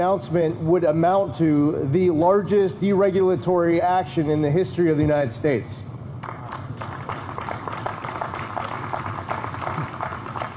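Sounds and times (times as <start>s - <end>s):
speech: 0.0s - 5.9s
tepid applause from an audience: 6.2s - 10.5s.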